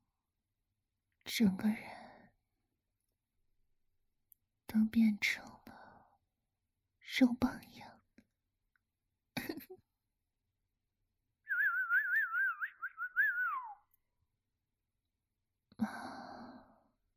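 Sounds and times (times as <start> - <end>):
speech: 1.4 - 2.0, 4.8 - 5.6, 7.1 - 7.9
person whistling: 11.5 - 13.8.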